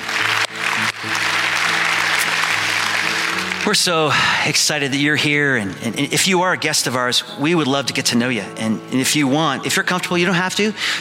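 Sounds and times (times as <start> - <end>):
congregation applauding during a church service: 0.0 - 5.0
speech: 3.7 - 10.9.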